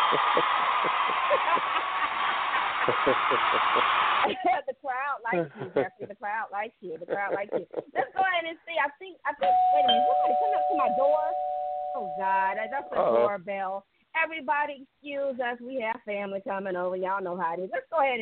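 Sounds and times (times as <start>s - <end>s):
noisy cheering: 0.0s - 4.3s
laughter: 0.0s - 4.6s, 5.3s - 6.2s, 6.9s - 8.3s
speech: 0.1s - 1.9s, 2.9s - 18.2s
doorbell sounding as a steady mid-pitched tone: 9.4s - 13.0s.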